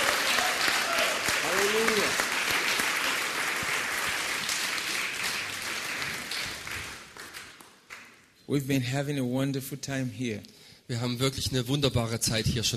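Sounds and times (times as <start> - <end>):
church congregation clapping at a revival service: 0.0 - 8.4
speech: 8.5 - 12.7.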